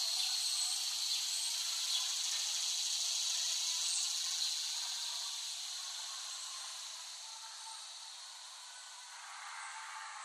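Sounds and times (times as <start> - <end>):
cicadas droning: 0.0 - 10.2.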